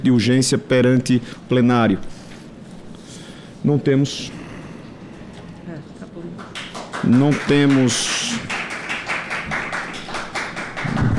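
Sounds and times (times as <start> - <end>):
speech: 0.0 - 2.2, 3.6 - 4.4, 7.0 - 8.2
people present applauding: 6.4 - 11.1.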